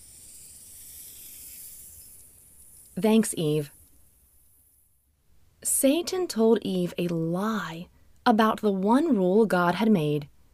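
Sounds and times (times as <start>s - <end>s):
snake hissing: 0.0s - 5.0s
speech: 3.0s - 3.8s, 5.8s - 10.3s.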